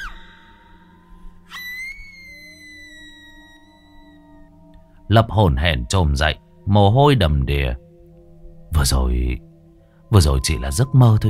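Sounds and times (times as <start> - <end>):
woman's high piercing scream at night in thick fog: 1.5 - 4.3
speech: 5.1 - 7.8, 8.7 - 9.5, 10.1 - 11.2.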